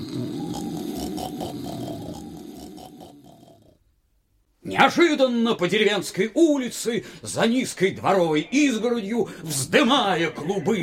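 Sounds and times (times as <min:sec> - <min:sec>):
loud snoring: 0:00.0 - 0:03.9
speech: 0:04.6 - 0:10.8.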